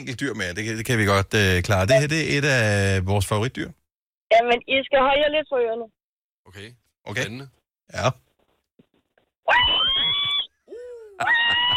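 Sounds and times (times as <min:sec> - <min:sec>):
speech: 0:00.0 - 0:08.2, 0:09.5 - 0:10.2, 0:11.2 - 0:11.6
pig squealing before slaughter: 0:09.5 - 0:10.6, 0:11.2 - 0:11.7.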